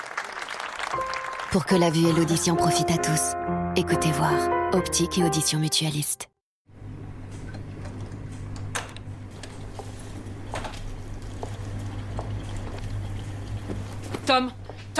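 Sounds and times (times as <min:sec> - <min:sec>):
speech: 0:00.9 - 0:06.3, 0:14.3 - 0:14.9
dishwasher running: 0:06.8 - 0:14.8.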